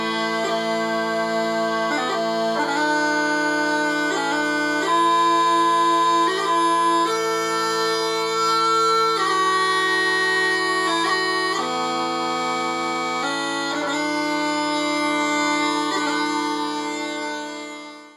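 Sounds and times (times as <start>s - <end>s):
smallpipes bagpipes playing: 0.0s - 18.1s.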